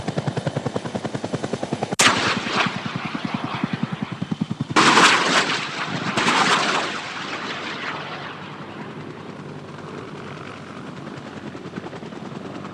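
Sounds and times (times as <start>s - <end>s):
AH-1 Cobra helicopter hovering steadily: 0.0s - 12.7s
AH-1 Cobra machine gun firing: 2.0s - 3.9s, 4.7s - 8.4s.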